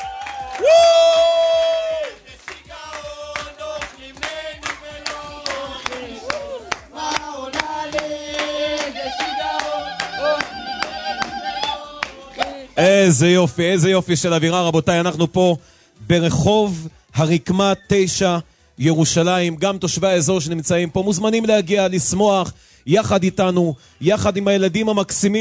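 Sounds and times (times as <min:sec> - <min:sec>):
crowd applause and clapping: 0:00.0 - 0:12.5
speech: 0:12.8 - 0:25.3.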